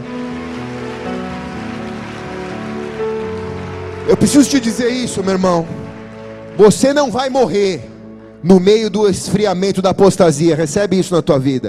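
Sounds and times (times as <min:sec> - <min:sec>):
audience applauding: 0:00.0 - 0:08.2
speech: 0:04.1 - 0:05.9, 0:06.6 - 0:11.6.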